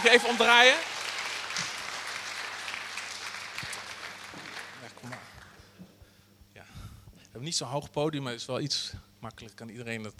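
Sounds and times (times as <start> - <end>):
speech: 0.0 - 0.9, 7.4 - 10.1
audience applause: 0.0 - 5.6.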